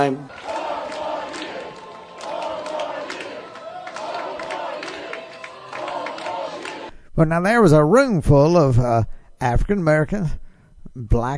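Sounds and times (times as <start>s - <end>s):
speech: 0.0s - 0.5s, 7.2s - 11.3s
crowd yelling and chanting: 0.0s - 6.9s
scattered clapping and cheers: 0.0s - 6.9s.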